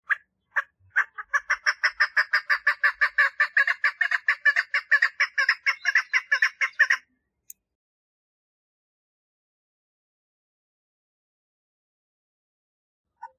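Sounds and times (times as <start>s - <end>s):
partridge giving grating chuck calls: 0.0s - 7.1s.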